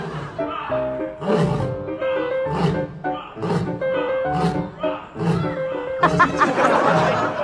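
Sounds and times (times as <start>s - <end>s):
lion roaring at zoo: 1.2s - 5.6s
laughter: 6.0s - 7.4s.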